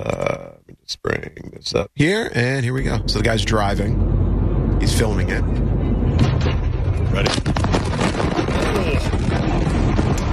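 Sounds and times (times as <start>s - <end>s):
speech: 1.2s - 4.2s, 4.8s - 5.8s, 7.2s - 7.7s
explosion shockwave hitting car window: 2.8s - 10.3s.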